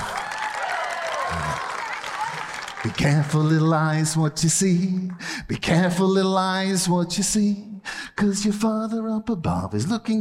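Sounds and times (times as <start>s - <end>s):
children clapping: 0.0s - 3.8s
speech: 2.8s - 10.1s.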